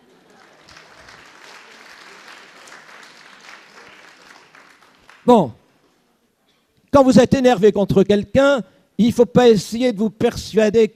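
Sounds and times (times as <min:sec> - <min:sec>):
audience applause: 0:00.0 - 0:05.3
speech: 0:05.3 - 0:05.6, 0:07.0 - 0:10.9.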